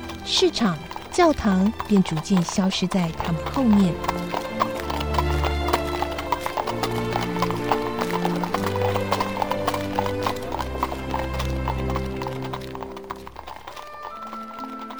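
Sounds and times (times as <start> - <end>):
horse pulling a carriage clip-clopping: 0.0 - 14.9
speech: 0.2 - 4.4.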